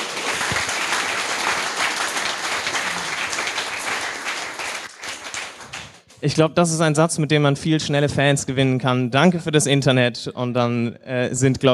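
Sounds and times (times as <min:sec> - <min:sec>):
audience applause: 0:00.0 - 0:06.1
speech: 0:06.2 - 0:11.7.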